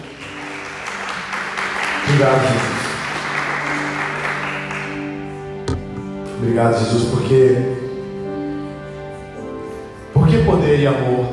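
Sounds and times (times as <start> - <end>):
people applauding: 0.0 - 5.6
speech: 2.1 - 2.8, 6.4 - 7.8, 10.5 - 11.3.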